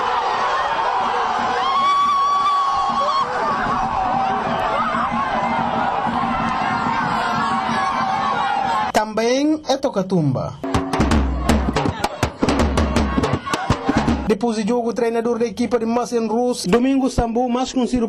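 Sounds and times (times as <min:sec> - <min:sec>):
football fans cheering after penalty save: 0:00.0 - 0:08.9, 0:10.6 - 0:14.3
speech: 0:09.9 - 0:11.3, 0:14.3 - 0:18.0.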